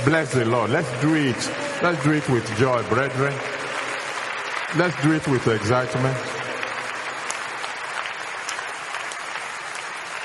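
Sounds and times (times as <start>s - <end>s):
speech: 0.0s - 3.6s, 4.7s - 6.4s
church congregation clapping: 0.0s - 10.2s.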